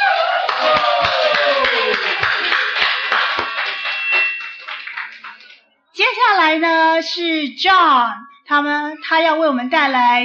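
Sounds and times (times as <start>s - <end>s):
crowd applauding: 0.0s - 5.6s
speech: 6.5s - 10.2s.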